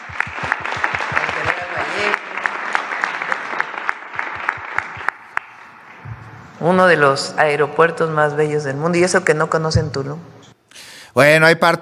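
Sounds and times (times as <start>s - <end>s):
rhythmic audience clapping: 0.0s - 6.5s
crowd noise: 0.0s - 6.7s
speech: 6.6s - 10.3s, 11.2s - 11.7s.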